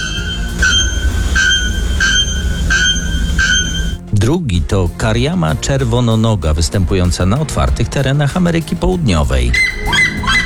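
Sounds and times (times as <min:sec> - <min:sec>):
bare-throated bellbird loud metallic call: 0:00.0 - 0:04.0, 0:09.5 - 0:10.4
speech: 0:04.2 - 0:09.9.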